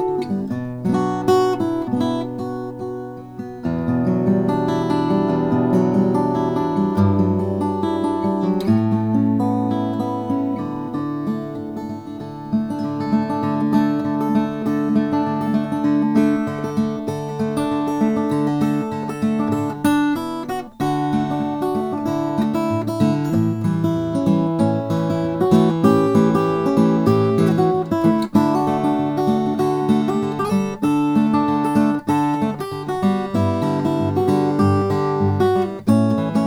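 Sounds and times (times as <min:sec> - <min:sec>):
1950 Martin 00 17 mahogany guitar: 0:00.0 - 0:36.4.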